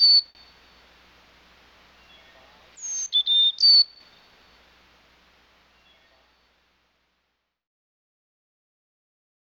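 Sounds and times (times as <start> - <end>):
chickadee whistled notes: 2.1 - 4.6.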